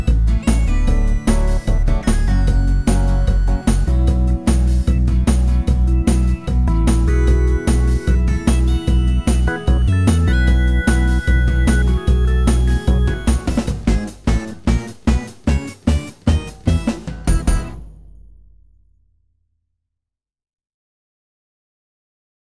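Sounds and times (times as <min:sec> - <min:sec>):
karaoke music: 0:00.0 - 0:17.8.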